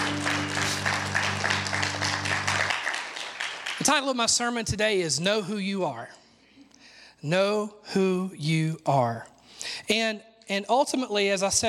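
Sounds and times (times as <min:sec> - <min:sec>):
audience clapping: 0:00.0 - 0:04.3
speech: 0:03.8 - 0:06.2, 0:07.2 - 0:11.6.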